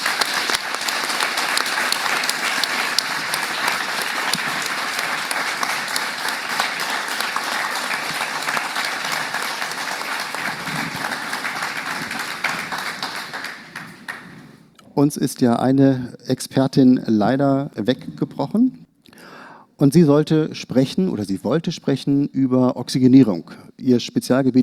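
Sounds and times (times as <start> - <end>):
audience applause: 0.0 - 14.4
speech: 15.0 - 18.8, 19.8 - 24.6.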